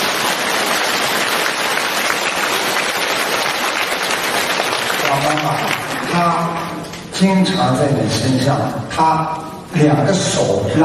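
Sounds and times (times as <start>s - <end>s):
audience applause: 0.0s - 6.8s
speech: 5.1s - 10.8s.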